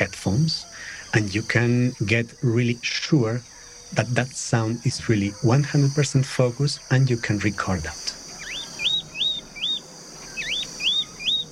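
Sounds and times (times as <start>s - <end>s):
faint hiss: 0.0s - 11.5s
speech: 0.3s - 8.2s
bird singing in trees: 8.3s - 11.5s.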